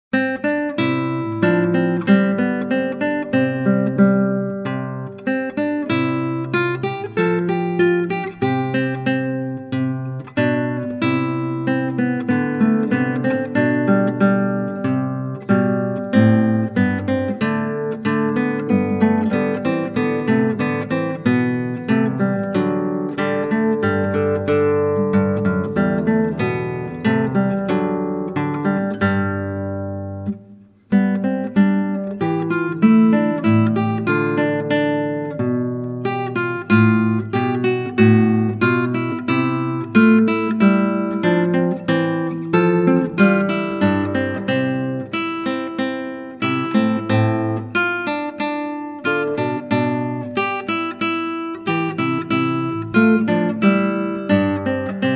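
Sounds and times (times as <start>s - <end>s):
classical guitar: 0.1s - 55.1s.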